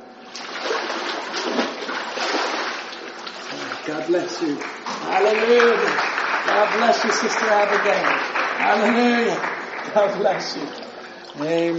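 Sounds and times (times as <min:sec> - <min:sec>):
water splash of immersion baptism: 0:00.2 - 0:05.3, 0:09.8 - 0:11.7
speech: 0:03.9 - 0:10.8, 0:11.4 - 0:11.7.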